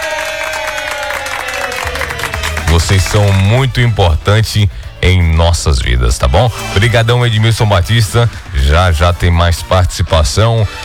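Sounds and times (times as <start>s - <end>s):
applause: 0.0s - 3.6s
crowd noise: 0.0s - 10.8s
speech: 2.8s - 10.8s.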